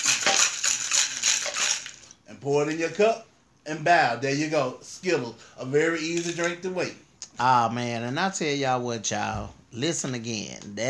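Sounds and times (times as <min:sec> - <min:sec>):
ice rattling in a cocktail shaker: 0:00.0 - 0:02.2
speech: 0:02.4 - 0:10.8.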